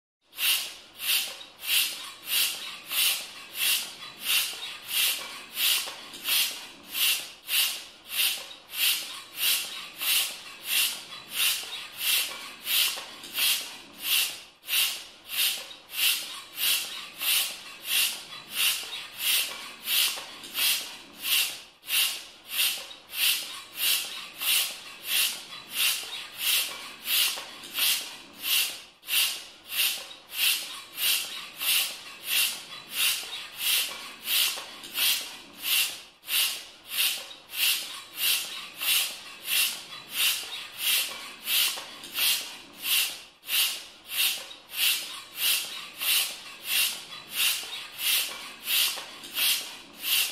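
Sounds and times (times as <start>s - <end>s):
hand pump: 0.3s - 50.3s.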